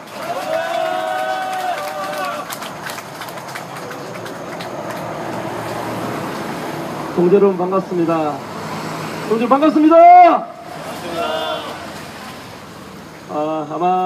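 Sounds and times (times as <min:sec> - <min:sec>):
crowd applause: 0:00.0 - 0:07.1, 0:10.6 - 0:12.7
speech: 0:07.2 - 0:08.5, 0:09.3 - 0:10.5, 0:13.3 - 0:14.0.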